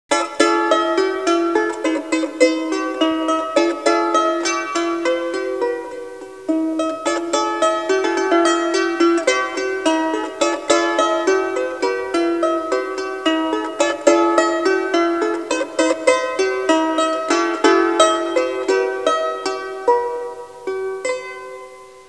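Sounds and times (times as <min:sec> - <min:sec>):
instrumental music: 0:00.1 - 0:22.0.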